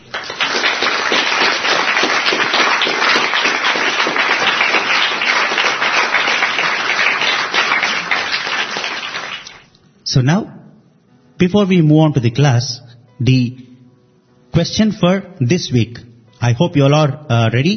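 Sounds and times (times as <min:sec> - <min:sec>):
audience applause: 0:00.0 - 0:09.7
speech: 0:10.1 - 0:10.6, 0:11.4 - 0:13.7, 0:14.6 - 0:17.7.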